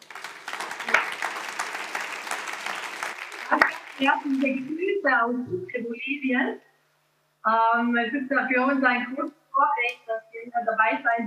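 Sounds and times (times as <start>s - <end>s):
audience applause: 0.0s - 4.7s
speech: 4.0s - 6.7s, 7.4s - 11.2s.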